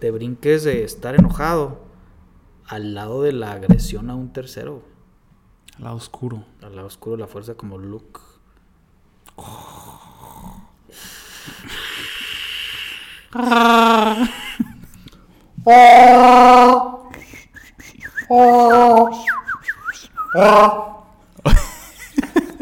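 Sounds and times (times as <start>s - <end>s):
speech: 0.0s - 1.8s, 2.7s - 4.9s, 5.8s - 8.3s, 9.4s - 10.0s, 13.3s - 14.4s, 15.6s - 16.9s, 18.3s - 19.4s, 20.3s - 21.6s
whistled chirps imitating a robot or little birds: 17.2s - 20.5s.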